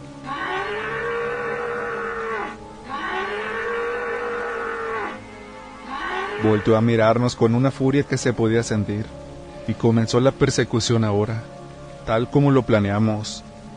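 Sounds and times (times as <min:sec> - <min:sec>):
bellowing in pain: 0:00.2 - 0:06.9
speech: 0:06.4 - 0:13.5.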